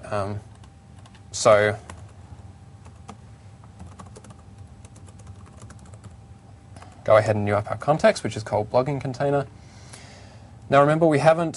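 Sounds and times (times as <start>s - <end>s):
speech: 0.1s - 0.5s, 1.3s - 1.9s, 7.1s - 9.6s, 10.7s - 11.5s
computer keyboard typing code in Visual Studio 2010: 0.5s - 1.2s, 2.8s - 6.2s.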